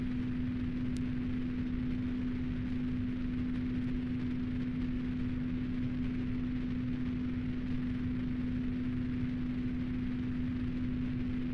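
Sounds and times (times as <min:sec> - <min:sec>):
low hum: 0:00.0 - 0:11.5
white noise: 0:00.0 - 0:11.5.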